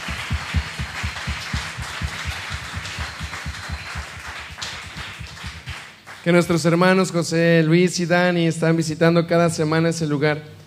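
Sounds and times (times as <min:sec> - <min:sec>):
crowd applause: 0:00.0 - 0:06.3
speech: 0:06.2 - 0:10.6.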